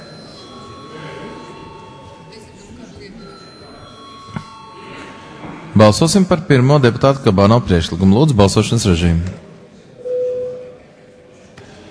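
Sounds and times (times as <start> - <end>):
parliament voting call bell: 0.0 - 5.4
low murmur of voices in the chamber: 0.0 - 11.8
speech: 5.8 - 9.4.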